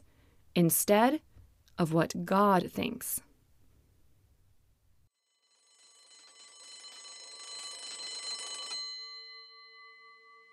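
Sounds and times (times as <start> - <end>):
speech: 0.6 - 3.3
school bell ringing: 5.4 - 10.5.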